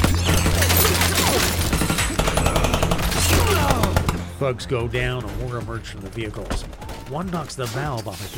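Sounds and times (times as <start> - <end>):
burst of gunfire: 0.0 - 4.3
speech: 4.4 - 8.3.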